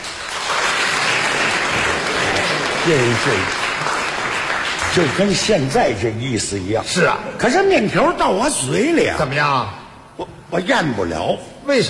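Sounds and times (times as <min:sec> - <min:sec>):
audience applause: 0:00.0 - 0:06.3
speech: 0:02.8 - 0:03.6, 0:05.0 - 0:11.8.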